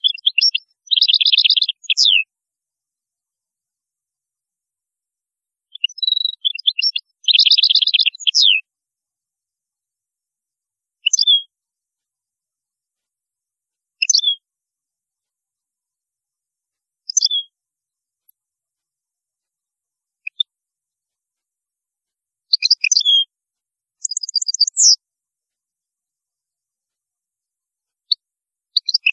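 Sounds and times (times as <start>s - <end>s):
European goldfinch song: 0.0s - 2.3s, 5.6s - 8.7s, 11.0s - 11.5s, 14.0s - 14.5s, 17.0s - 17.6s, 20.2s - 20.5s, 22.4s - 23.3s, 24.0s - 25.0s, 27.9s - 29.1s.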